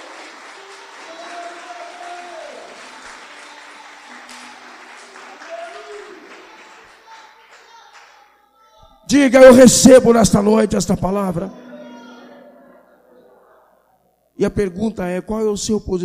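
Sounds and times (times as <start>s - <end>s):
audience applauding: 0.0s - 8.3s
speech: 9.1s - 11.6s, 14.4s - 16.0s.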